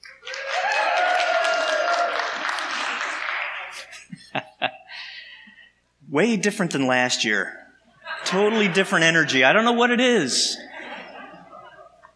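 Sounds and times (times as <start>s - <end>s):
crowd cheering and applauding: 0.0s - 4.0s
whoops: 0.2s - 2.6s
laughter: 2.4s - 5.3s, 8.0s - 9.4s, 10.3s - 12.1s
speech: 6.1s - 7.6s, 8.3s - 10.7s.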